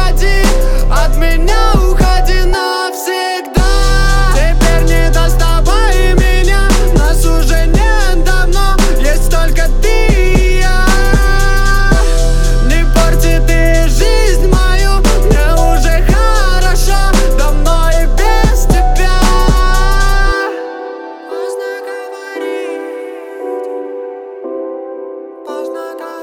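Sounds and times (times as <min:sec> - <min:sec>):
low bass tone: 0:00.0 - 0:02.6, 0:03.6 - 0:20.3.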